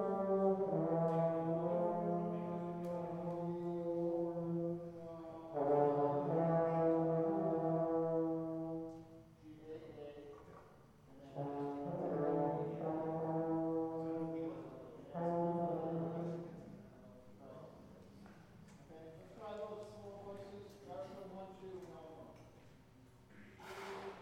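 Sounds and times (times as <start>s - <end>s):
brass instruments: 0.0s - 9.4s, 11.2s - 16.8s.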